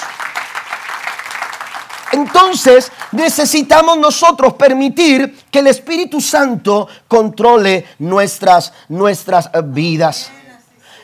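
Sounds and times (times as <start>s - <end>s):
crowd applauding: 0.0s - 3.6s
speech: 2.2s - 10.4s.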